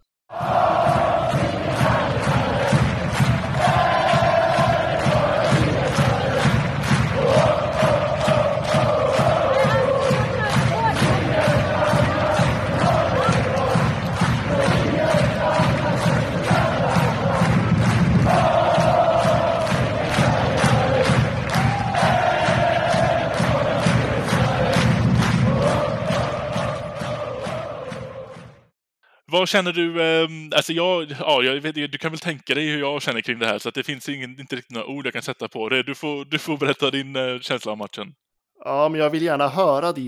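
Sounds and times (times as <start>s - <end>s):
rhythmic clapping or stomping: 0.0s - 28.7s
crowd cheering and chanting: 0.3s - 28.7s
speech: 29.5s - 40.0s.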